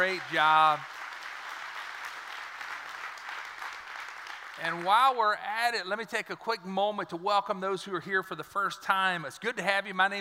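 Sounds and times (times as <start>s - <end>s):
speech: 0.0s - 1.0s, 4.6s - 10.1s
audience applause: 0.0s - 5.2s.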